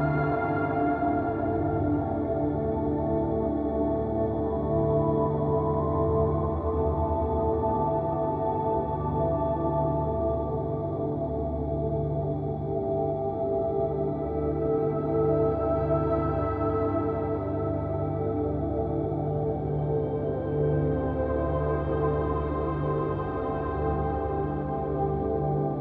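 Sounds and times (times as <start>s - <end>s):
warm angelic ambient music: 0.0s - 25.8s.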